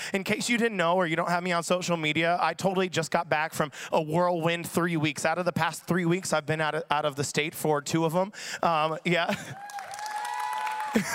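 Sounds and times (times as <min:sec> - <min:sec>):
speech: 0:00.1 - 0:09.8, 0:10.9 - 0:11.1
kids cheering and clapping: 0:09.4 - 0:11.1.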